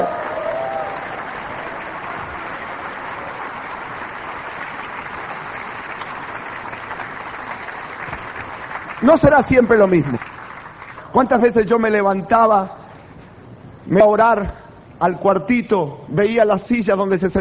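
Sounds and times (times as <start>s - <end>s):
audience applause: 0.0s - 11.3s
speech: 9.0s - 10.3s, 11.1s - 12.8s, 13.8s - 17.3s.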